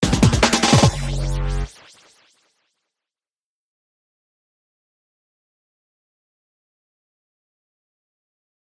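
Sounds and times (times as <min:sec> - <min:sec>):
drum and bass sting: 0:00.0 - 0:02.2.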